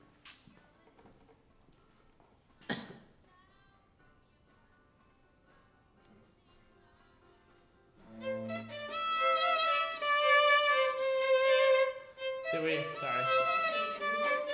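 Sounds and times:
violin: 0:08.0 - 0:14.5.

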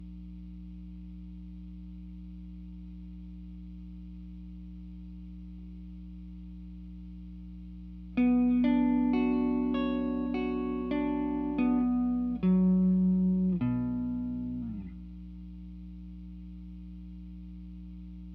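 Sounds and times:
guitar: 0:08.1 - 0:15.2.

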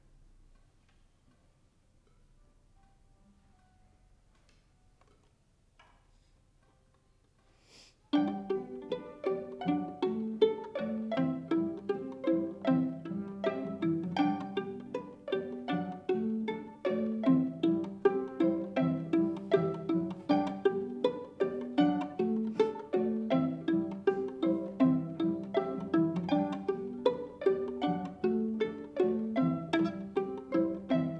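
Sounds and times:
violin: 0:08.1 - 0:31.1.

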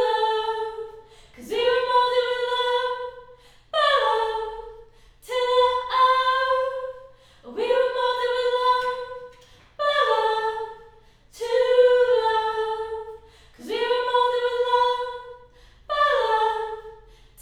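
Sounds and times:
choir singing high harmony: 0:00.0 - 0:17.4.

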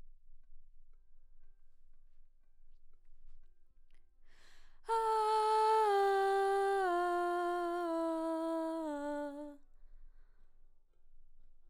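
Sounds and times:
background vocals: 0:04.9 - 0:09.6.

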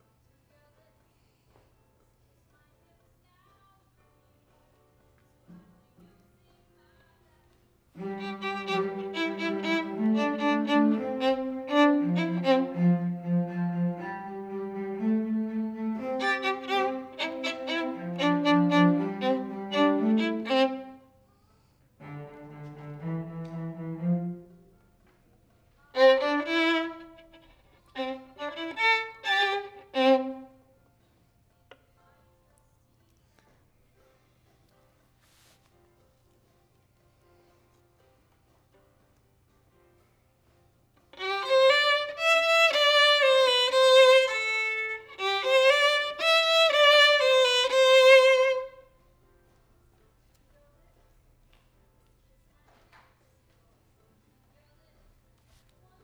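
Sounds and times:
violin: 0:07.9 - 0:21.2, 0:22.0 - 0:25.2, 0:25.8 - 0:30.7, 0:41.2 - 0:49.1.

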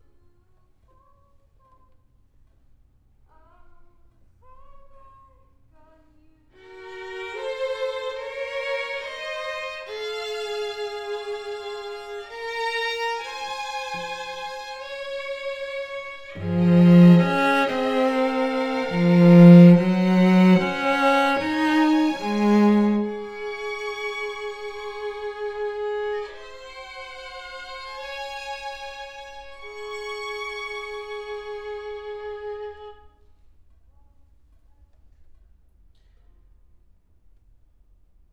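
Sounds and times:
cello: 0:06.6 - 0:33.2.

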